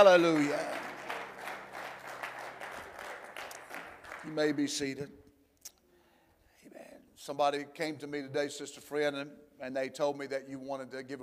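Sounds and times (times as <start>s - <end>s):
speech: 0.0s - 0.8s, 4.2s - 5.2s, 7.2s - 11.2s
crowd clapping: 0.0s - 4.9s.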